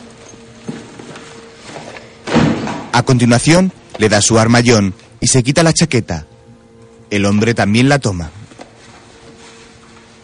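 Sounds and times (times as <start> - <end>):
handbag thrown onto a chair: 1.7 - 3.0
speech: 3.0 - 6.3, 7.1 - 8.4.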